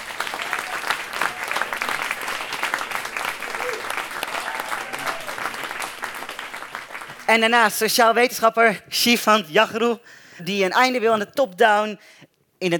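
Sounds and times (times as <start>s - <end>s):
audience applause: 0.0s - 7.3s
speech: 7.3s - 12.7s.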